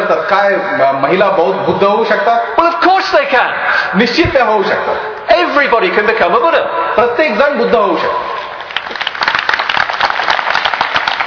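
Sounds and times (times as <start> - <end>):
speech: 0.1 - 8.4
audience applause at a Buddhist teaching session: 8.6 - 11.2.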